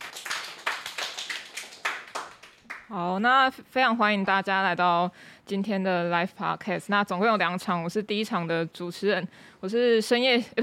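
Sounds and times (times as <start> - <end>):
applause: 0.0 - 2.9
speech: 2.9 - 10.6.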